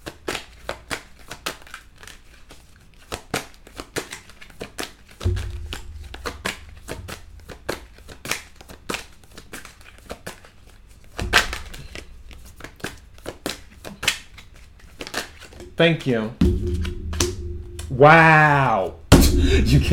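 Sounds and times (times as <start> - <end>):
tarot cards being shuffled and drawn: 0.0 - 5.3, 6.3 - 16.1
speech: 15.8 - 16.7, 18.0 - 19.9.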